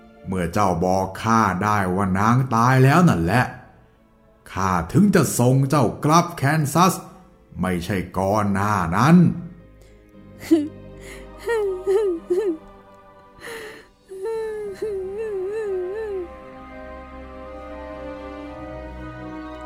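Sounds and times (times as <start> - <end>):
speech: 0.2 - 3.6, 4.5 - 9.4, 10.4 - 12.6
little girl crying: 10.4 - 12.6, 13.4 - 16.4.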